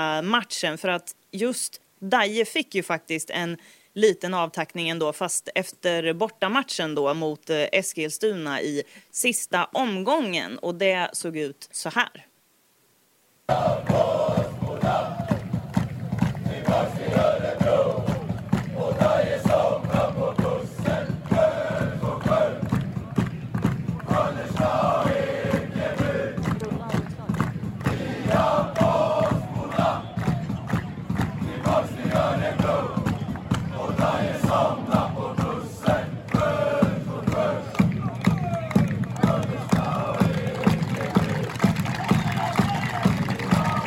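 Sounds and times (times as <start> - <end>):
speech: 0.0 - 12.3, 13.5 - 15.2
large crowd roaring and cheering at final match: 13.5 - 43.8.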